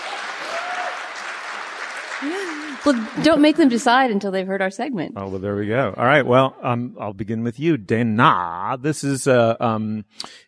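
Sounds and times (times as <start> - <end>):
live audience clapping: 0.0 - 4.3
speech: 2.2 - 10.4.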